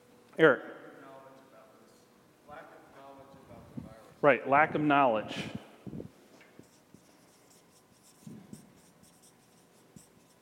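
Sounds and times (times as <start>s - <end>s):
speech: 0.4s - 0.7s, 4.2s - 5.6s
quick handwriting during a group discussion: 6.6s - 10.3s.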